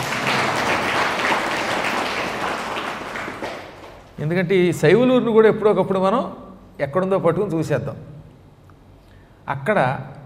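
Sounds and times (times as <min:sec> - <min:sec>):
audience applause at a devotional talk: 0:00.0 - 0:04.1
speech: 0:04.2 - 0:08.1, 0:09.5 - 0:10.1.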